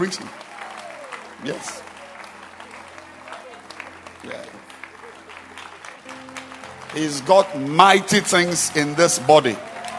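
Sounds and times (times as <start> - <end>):
speech: 0.0 - 0.5, 1.4 - 1.9, 4.2 - 4.7, 6.9 - 9.7
crowd audience applauding: 0.0 - 9.9.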